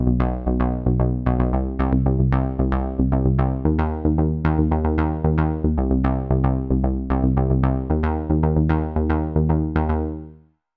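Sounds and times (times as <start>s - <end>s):
bass playing on LP: 0.0s - 10.4s.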